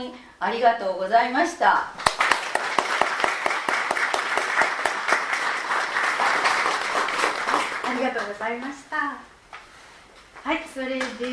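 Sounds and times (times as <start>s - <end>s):
speech: 0.0s - 2.0s, 8.0s - 9.3s, 10.4s - 11.3s
crowd applauding: 2.0s - 8.4s.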